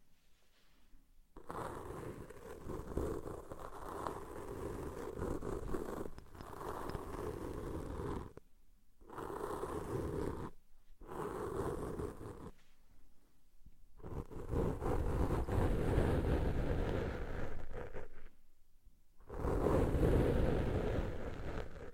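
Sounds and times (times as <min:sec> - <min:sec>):
deep ear cleaning scratching and rubbing: 0:00.0 - 0:08.4, 0:09.0 - 0:12.8, 0:14.0 - 0:18.4, 0:19.2 - 0:21.9.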